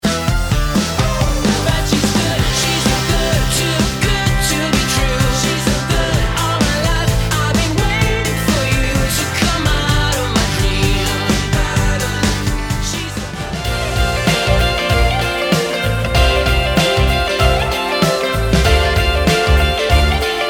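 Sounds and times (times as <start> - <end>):
perky pop music: 0.0 - 20.4.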